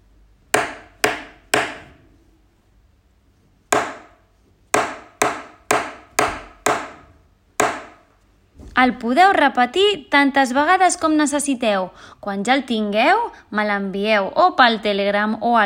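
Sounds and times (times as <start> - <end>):
rhythm dictation of quarter and eighth notes as wooden taps: 0.6 - 1.8, 3.7 - 7.0, 7.6 - 8.0
speech: 8.8 - 15.6.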